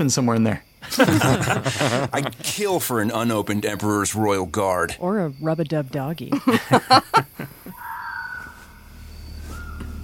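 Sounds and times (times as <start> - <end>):
speech: 0.0 - 7.6
laughter: 0.8 - 3.4, 6.3 - 7.8
owl hooting: 7.3 - 10.0
thin sustained whistling tone: 7.7 - 10.0.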